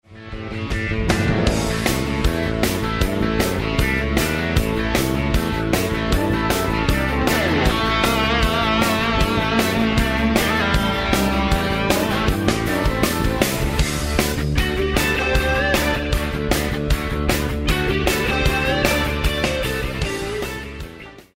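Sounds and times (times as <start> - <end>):
rock music: 0.0 - 21.3.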